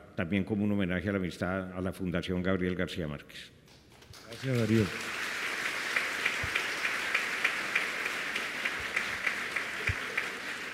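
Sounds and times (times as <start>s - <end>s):
speech: 0.2s - 3.6s, 4.3s - 5.2s
audience applause: 4.1s - 10.7s.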